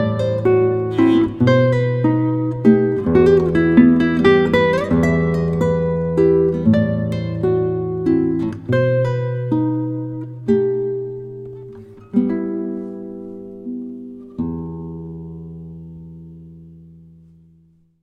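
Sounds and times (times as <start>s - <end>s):
romantic Spanish guitar playing: 0.0s - 17.7s.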